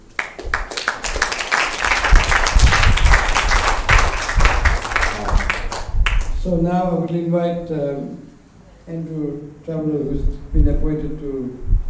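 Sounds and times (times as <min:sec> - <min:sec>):
crowd applause: 0:00.1 - 0:06.4
speech: 0:06.5 - 0:08.2, 0:08.9 - 0:11.8.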